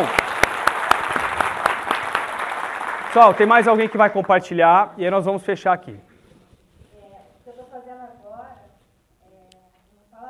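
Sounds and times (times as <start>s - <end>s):
speech: 0.0s - 0.2s, 3.1s - 6.1s
audience applause: 0.0s - 4.5s.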